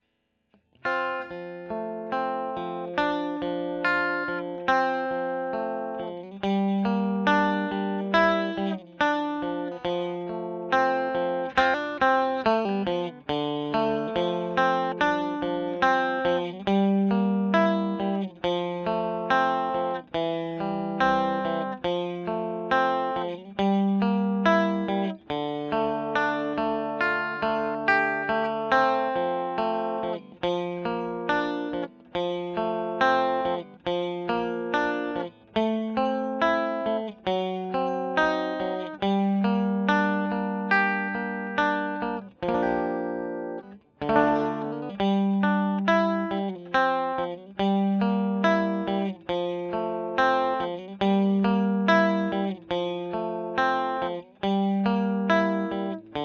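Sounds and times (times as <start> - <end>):
electric guitar recorded with Royer microphone: 0.7 - 56.2.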